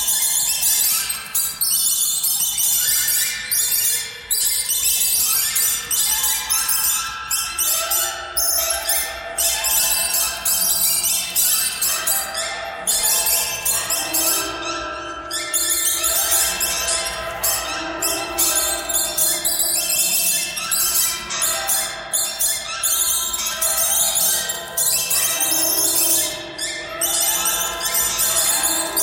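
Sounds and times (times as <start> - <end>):
birds: 0.0 - 29.0.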